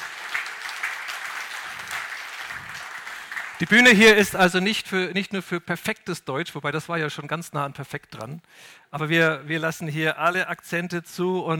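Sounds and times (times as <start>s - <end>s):
audience clapping: 0.0s - 4.4s
speech: 3.6s - 11.5s.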